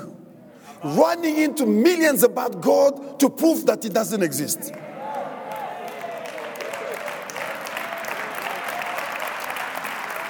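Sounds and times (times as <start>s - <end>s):
speech: 0.8s - 5.0s
people clapping hands: 4.7s - 10.2s.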